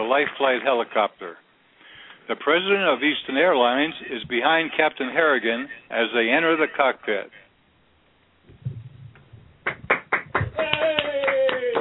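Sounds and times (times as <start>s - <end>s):
speech: 0.1s - 1.5s, 2.3s - 7.4s
large round of applause: 9.6s - 11.7s.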